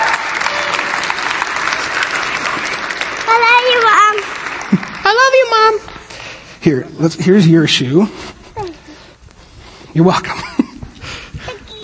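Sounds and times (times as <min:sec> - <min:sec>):
audience applause: 0:00.0 - 0:06.1
speech: 0:06.6 - 0:08.4, 0:10.0 - 0:10.4.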